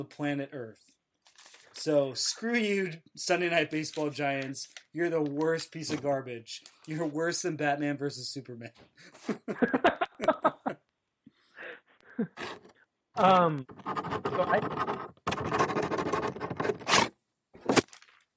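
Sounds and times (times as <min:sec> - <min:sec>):
speech: 0:00.0 - 0:01.0, 0:01.8 - 0:10.3, 0:13.2 - 0:15.2
laughter: 0:09.0 - 0:10.8
pen scratching across paper while someone writes: 0:13.7 - 0:17.1.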